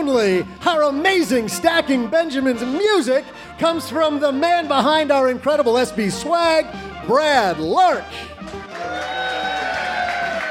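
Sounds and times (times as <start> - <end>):
speech: 0.0 - 9.0
audience applause: 8.4 - 10.4.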